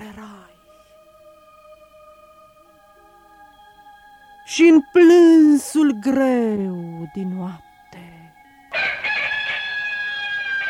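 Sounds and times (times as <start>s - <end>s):
speech: 4.5s - 7.7s
rooster crowing: 8.7s - 10.6s.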